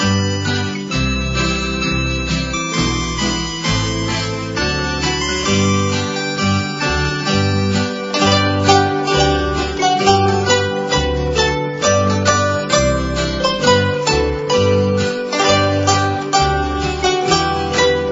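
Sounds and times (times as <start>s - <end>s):
Christmas harp music: 0.0s - 18.1s.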